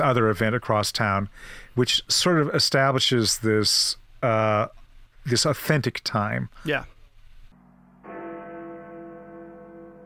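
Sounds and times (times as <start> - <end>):
speech: 0.0 - 7.0
Big Ben clock bell striking: 7.6 - 10.0.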